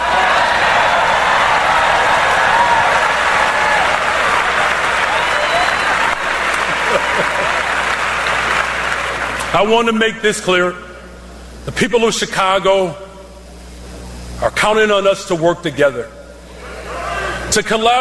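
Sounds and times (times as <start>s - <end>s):
audience applause: 0.0s - 9.5s
laughter: 6.2s - 8.0s, 16.5s - 17.5s
speech: 9.5s - 10.9s, 11.6s - 13.0s, 14.4s - 16.2s, 17.5s - 17.9s.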